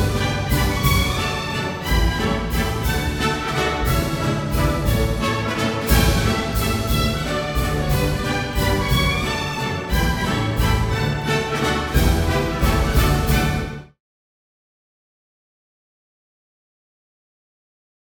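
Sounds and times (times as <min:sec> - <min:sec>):
mazurka: 0:00.0 - 0:13.8.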